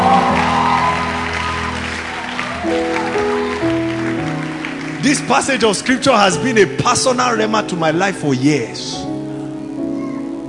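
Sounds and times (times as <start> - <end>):
audience clapping: 0.0 - 6.7
speech: 5.1 - 9.1.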